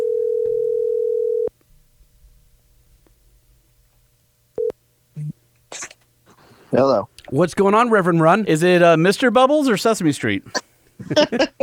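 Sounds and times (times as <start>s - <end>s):
telephone dial tone while dialing: 0.0s - 1.5s
speech: 6.7s - 11.6s
laughter: 10.5s - 11.6s.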